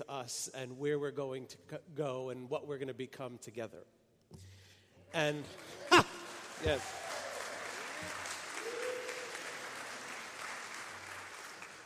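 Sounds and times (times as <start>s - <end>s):
speech: 0.1s - 4.5s, 5.1s - 7.0s
audience applause: 5.4s - 11.8s.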